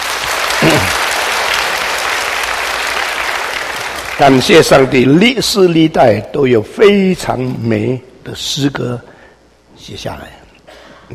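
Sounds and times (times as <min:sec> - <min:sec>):
audience applause: 0:00.0 - 0:04.9
speech: 0:04.2 - 0:09.1, 0:09.8 - 0:10.4.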